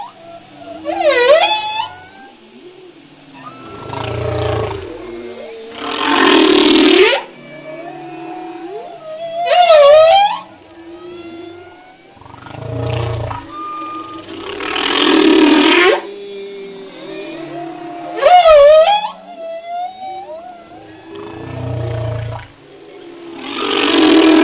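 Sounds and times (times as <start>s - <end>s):
humpback whale: 0.0s - 24.4s.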